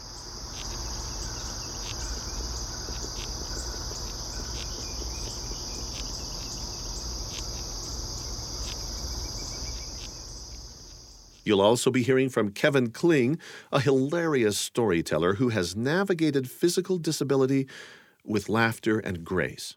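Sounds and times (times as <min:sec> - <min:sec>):
cerambycid beetle larva chewing wood under bark: 0:00.0 - 0:11.5
speech: 0:11.5 - 0:19.7.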